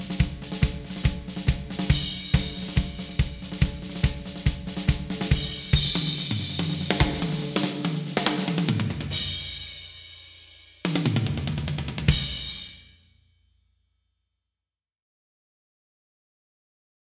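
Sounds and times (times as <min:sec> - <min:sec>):
drums: 0:00.0 - 0:13.0.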